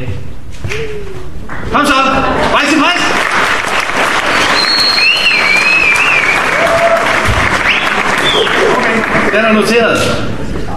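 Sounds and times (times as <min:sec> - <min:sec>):
speech: 0:00.0 - 0:03.0, 0:09.4 - 0:10.3
audience applause: 0:02.3 - 0:09.8.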